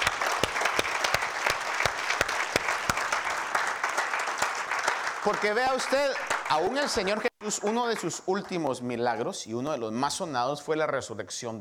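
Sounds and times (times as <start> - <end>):
audience applause: 0.0 - 8.8
speech: 5.2 - 11.6.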